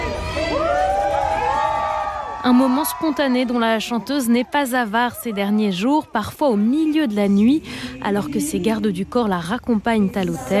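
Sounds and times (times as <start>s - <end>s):
crowd cheering a singer: 0.0s - 7.1s
speech: 2.4s - 10.5s.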